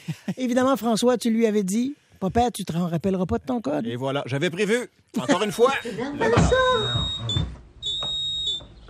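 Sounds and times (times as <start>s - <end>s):
speech: 0.3s - 7.6s
home alarm system beeping: 5.8s - 8.7s.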